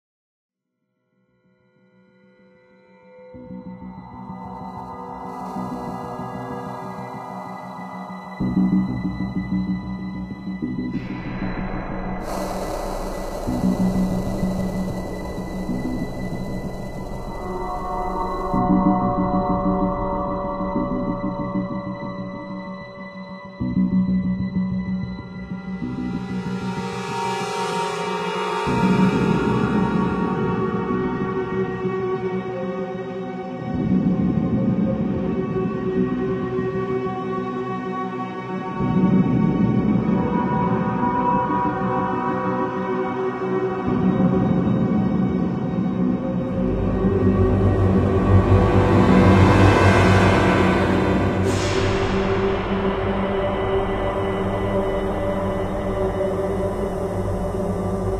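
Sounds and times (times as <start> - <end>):
descent music: 0.6 - 58.1.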